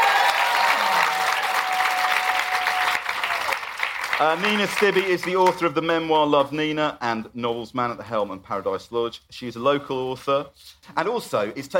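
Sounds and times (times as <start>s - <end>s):
audience applause: 0.0s - 5.6s
speech: 4.2s - 11.7s.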